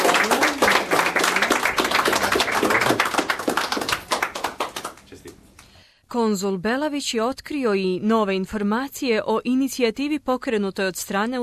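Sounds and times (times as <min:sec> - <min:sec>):
audience applause at a school award ceremony for a prize winner: 0:00.0 - 0:05.3
speech: 0:06.2 - 0:11.4.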